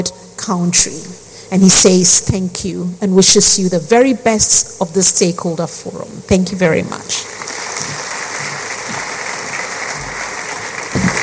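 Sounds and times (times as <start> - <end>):
speech: 0.5 - 7.3
crowd clapping: 7.2 - 11.2.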